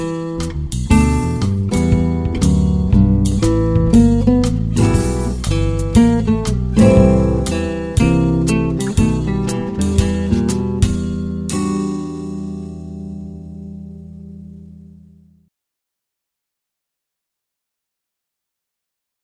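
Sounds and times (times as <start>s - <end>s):
guitar work song: 0.0s - 15.2s.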